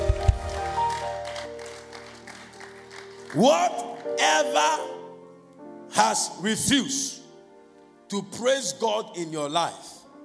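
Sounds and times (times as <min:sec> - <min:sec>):
audience clapping: 0:00.0 - 0:04.6
speech: 0:03.3 - 0:04.9, 0:05.9 - 0:07.2, 0:08.1 - 0:10.0.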